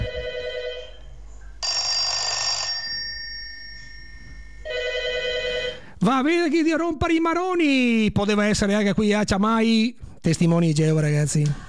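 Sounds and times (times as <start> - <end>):
old 1970s SIP rotary telephone bell ringing: 0.0 - 1.0, 1.6 - 5.9
speech: 6.0 - 11.6.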